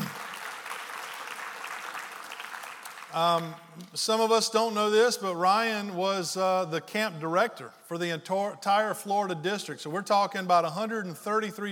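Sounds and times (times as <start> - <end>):
audience clapping: 0.0 - 4.0
speech: 3.1 - 11.7.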